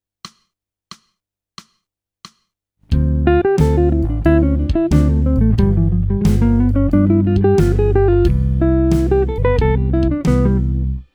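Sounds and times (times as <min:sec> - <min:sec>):
jazz music: 0:02.9 - 0:11.0.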